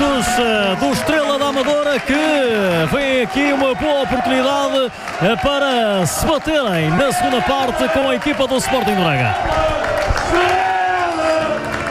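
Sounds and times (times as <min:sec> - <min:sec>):
football fans applauding team leaving for dressing rooms at half-time: 0:00.0 - 0:11.8
speech: 0:00.4 - 0:10.7.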